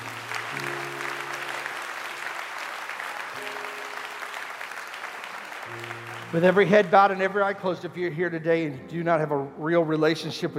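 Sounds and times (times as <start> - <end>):
audience clapping hands in praise: 0.0 - 7.8
speech: 6.3 - 10.5.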